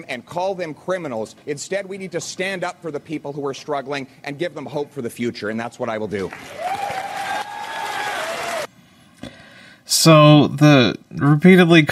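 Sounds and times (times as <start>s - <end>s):
speech: 0.0s - 6.7s, 10.0s - 11.8s
audience cheering and jeering: 6.5s - 8.7s.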